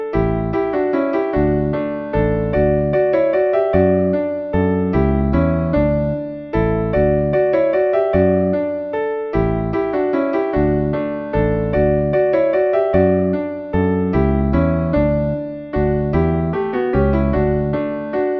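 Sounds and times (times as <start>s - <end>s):
waltz music: 0.2s - 8.8s, 9.4s - 18.3s.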